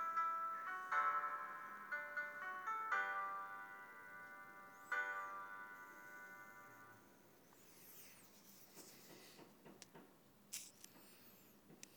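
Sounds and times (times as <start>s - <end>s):
piano: 0.0s - 7.8s.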